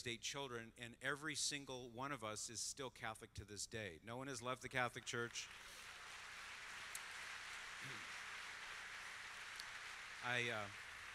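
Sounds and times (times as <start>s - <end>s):
speech: 0.0s - 5.9s, 7.8s - 8.2s, 10.2s - 10.8s
audience applause: 5.1s - 11.1s.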